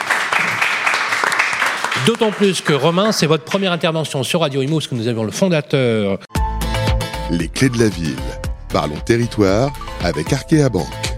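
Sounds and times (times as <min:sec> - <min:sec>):
audience applause: 0:00.0 - 0:03.2
speech: 0:02.0 - 0:06.3, 0:07.3 - 0:11.0.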